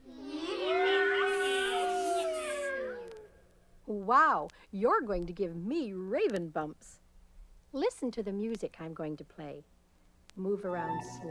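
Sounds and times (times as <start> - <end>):
voice imitating a cat's yowl: 0.0 - 3.4
speech: 4.1 - 7.0, 7.7 - 9.7, 10.4 - 11.2.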